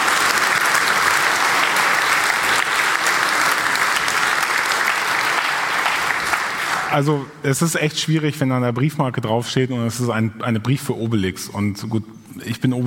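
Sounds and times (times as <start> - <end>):
audience applause: 0.0 - 7.0
speech: 6.9 - 12.8.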